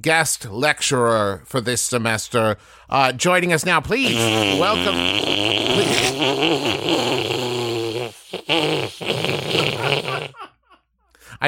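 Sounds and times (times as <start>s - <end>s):
speech: 0.0s - 7.5s, 8.4s - 10.4s
loud fart noise during class announcements: 4.0s - 10.5s.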